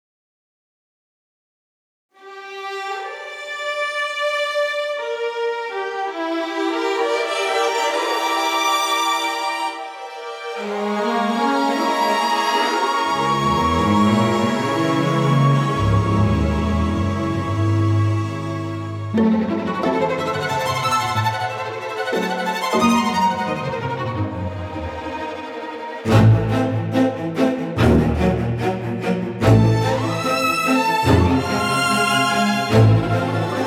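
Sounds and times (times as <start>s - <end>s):
strings: 2.2s - 33.6s.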